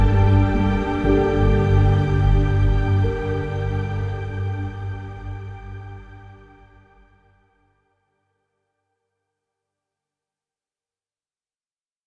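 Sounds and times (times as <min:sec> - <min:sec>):
ambient music: 0:00.0 - 0:07.4.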